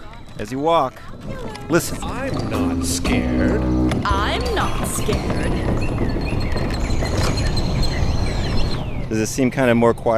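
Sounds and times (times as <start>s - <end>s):
speech: 0.4s - 7.4s, 9.1s - 10.1s
birds calling outdoors: 1.6s - 10.1s.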